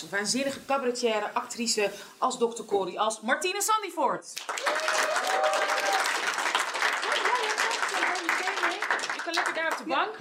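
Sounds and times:
speech: 0.0s - 5.4s, 9.8s - 10.2s
audience applause: 4.4s - 9.9s.

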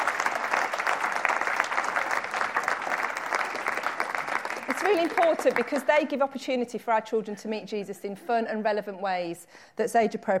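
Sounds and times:
round of applause: 0.0s - 6.0s
speech: 4.8s - 10.3s.

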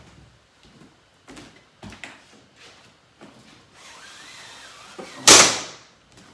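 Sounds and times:
curtain being drawn shut: 3.8s - 5.4s.

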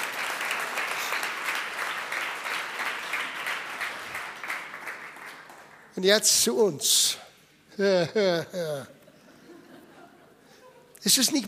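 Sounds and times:
audience applause: 0.0s - 5.9s
speech: 6.0s - 7.2s, 7.8s - 9.0s, 11.0s - 11.4s
laughter: 7.8s - 11.0s.

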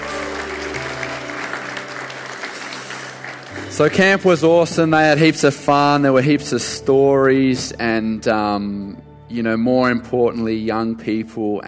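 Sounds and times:
crowd applauding: 0.0s - 5.3s
speech: 3.7s - 11.6s.

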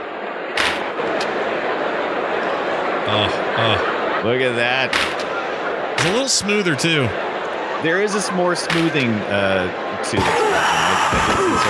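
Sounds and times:
video game hockey crowd noise: 0.0s - 11.6s
sharp crack: 0.6s - 0.9s, 4.9s - 5.3s
laughter: 1.0s - 11.6s
speech: 3.1s - 5.2s, 6.0s - 11.6s.

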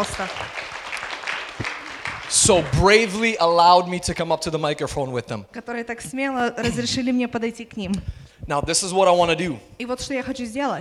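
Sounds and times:
speech: 0.0s - 0.7s, 2.3s - 10.8s
audience applause: 0.0s - 3.8s.

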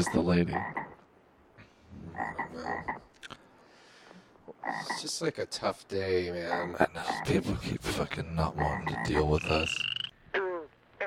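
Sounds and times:
speech: 0.0s - 0.8s, 4.7s - 10.0s
frogs croaking: 0.0s - 1.1s, 2.1s - 3.2s, 4.5s - 5.2s, 6.3s - 11.0s.

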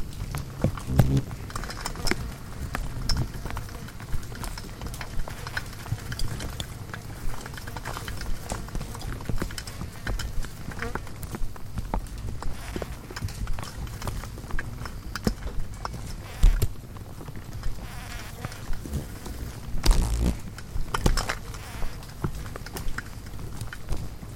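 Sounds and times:
insects hitting a lamp bulb: 0.1s - 24.2s
low continuous hum: 17.9s - 20.9s.

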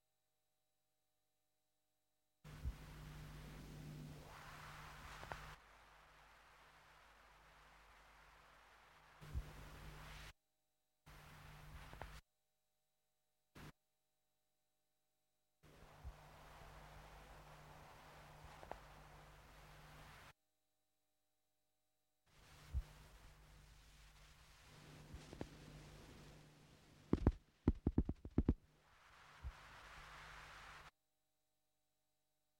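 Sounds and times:
steady low hum: 2.5s - 10.3s, 11.1s - 12.2s, 15.6s - 20.4s, 22.4s - 30.9s
blocks of tape loop hiss: 2.5s - 10.4s, 11.1s - 12.2s, 13.6s - 13.8s, 15.6s - 20.4s, 22.3s - 31.0s
sharp clicks and bursts: 27.1s - 28.6s.

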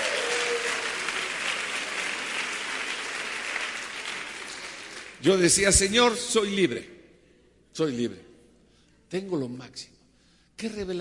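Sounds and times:
audience applause: 0.0s - 5.2s
speech: 5.2s - 6.9s, 7.8s - 8.3s, 9.1s - 10.0s, 10.6s - 11.0s.

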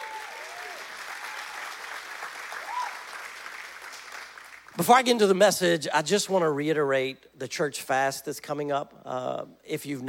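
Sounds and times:
audience applause: 0.0s - 4.8s
speech: 4.8s - 10.0s.

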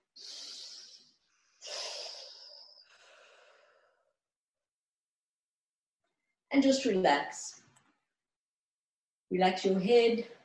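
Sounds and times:
deep breathing during a guided relaxation exercise: 0.2s - 4.2s
speech: 6.5s - 7.6s, 9.3s - 10.4s.

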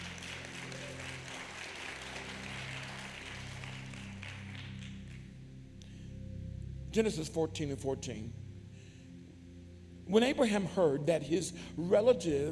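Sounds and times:
crowd audience clapping hands: 0.0s - 5.4s
speech: 6.9s - 8.4s, 10.1s - 12.5s.

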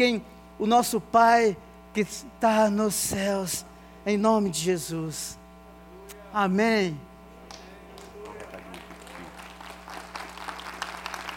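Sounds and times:
speech: 0.0s - 5.4s, 6.3s - 7.1s
audience applauding: 7.5s - 11.3s.

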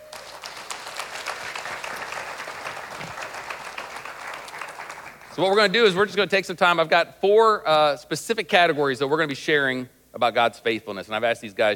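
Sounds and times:
church congregation applause welcoming guests at a Father's Day morning service: 0.0s - 5.7s
speech: 5.4s - 11.7s.

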